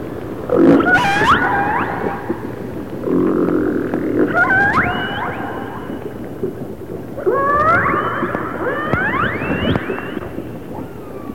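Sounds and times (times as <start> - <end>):
orca call: 0.5 - 2.5, 3.1 - 6.2, 7.2 - 10.4.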